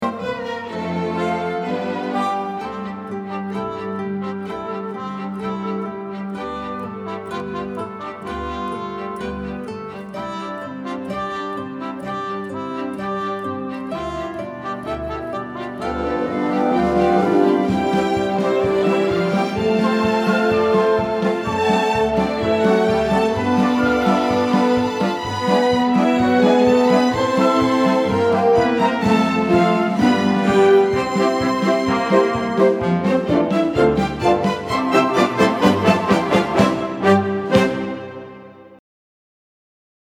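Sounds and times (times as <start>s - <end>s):
accompaniment music: 0.0s - 38.8s.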